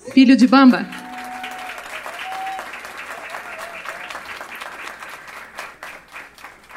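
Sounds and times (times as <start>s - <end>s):
audience applause: 0.0s - 6.7s
speech: 0.2s - 1.0s.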